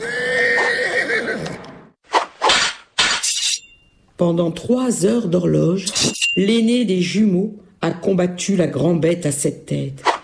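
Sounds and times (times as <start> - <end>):
horse neighing in a long wavering whinny: 0.0 - 1.6
speech: 4.2 - 10.1.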